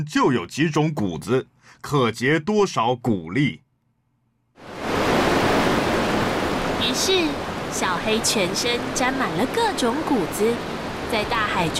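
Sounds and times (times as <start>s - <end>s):
speech: 0.0s - 3.6s, 6.8s - 11.7s
sea waves breaking: 4.6s - 11.7s.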